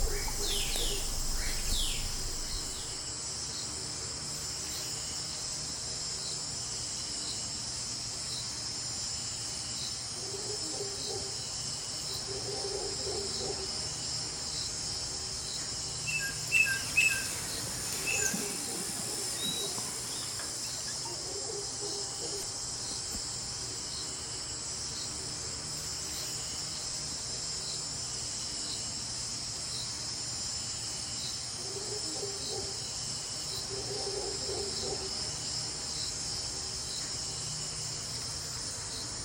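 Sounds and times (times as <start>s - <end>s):
Meso American forest soundscape: 0.0s - 39.2s.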